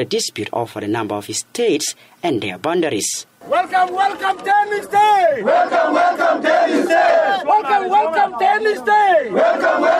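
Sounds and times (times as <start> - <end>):
speech: 0.0 - 9.9
pro-government protesters chanting slogans at an airport: 3.4 - 9.9.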